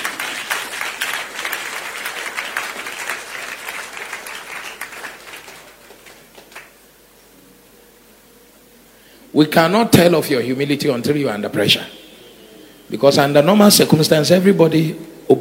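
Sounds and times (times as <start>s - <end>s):
crowd applause: 0.0s - 6.8s
speech: 9.4s - 12.0s, 12.9s - 15.4s.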